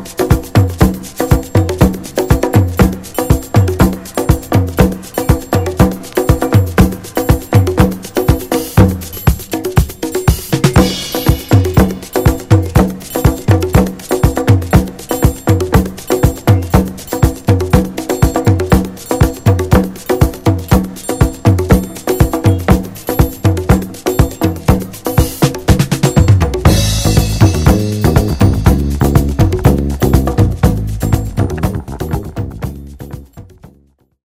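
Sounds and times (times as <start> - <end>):
disco strings: 0.0 - 33.8.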